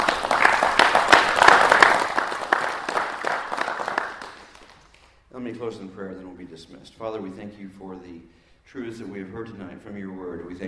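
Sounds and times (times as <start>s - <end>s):
audience applause: 0.0s - 5.0s
speech: 5.6s - 10.6s.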